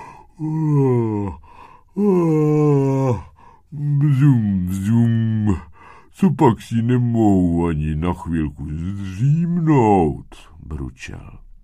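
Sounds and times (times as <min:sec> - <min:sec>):
person yawning: 0:00.0 - 0:05.7
speech: 0:00.4 - 0:01.4, 0:02.0 - 0:02.7, 0:06.2 - 0:11.4.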